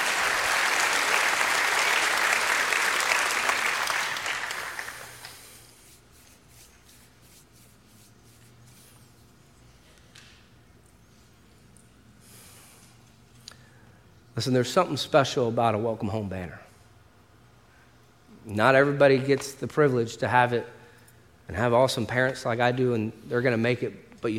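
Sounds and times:
congregation applauding at a church service: 0:00.0 - 0:06.0
speech: 0:14.4 - 0:16.6, 0:18.5 - 0:20.8, 0:21.5 - 0:24.3.

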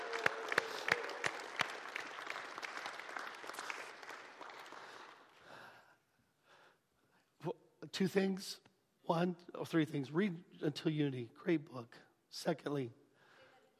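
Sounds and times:
church congregation applauding: 0:00.0 - 0:05.6
speech: 0:07.4 - 0:13.0.

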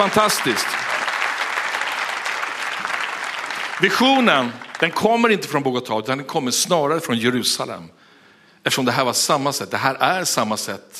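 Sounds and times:
speech: 0:00.0 - 0:00.8, 0:03.8 - 0:08.0, 0:08.6 - 0:10.9
audience applause: 0:00.0 - 0:05.5.

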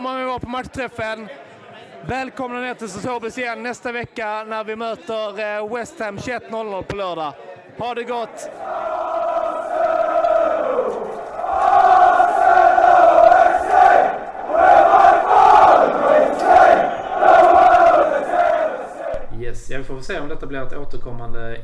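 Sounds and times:
speech: 0:00.0 - 0:09.1, 0:19.6 - 0:21.6
large crowd of football supporters chanting: 0:08.2 - 0:19.3.

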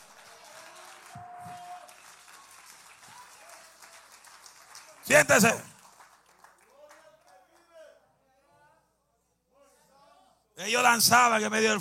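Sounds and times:
audience applause: 0:00.0 - 0:07.7
speech: 0:05.1 - 0:05.7, 0:10.6 - 0:11.7.

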